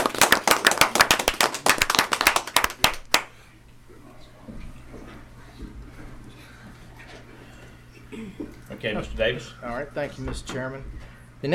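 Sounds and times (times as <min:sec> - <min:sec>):
audience applause: 0:00.0 - 0:03.3
speech: 0:08.8 - 0:11.5.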